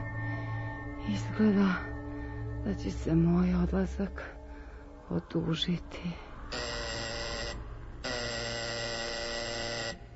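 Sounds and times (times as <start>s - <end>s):
speech: 1.1s - 1.9s, 2.6s - 4.4s, 5.1s - 6.8s
doorbell ringing: 6.5s - 10.0s.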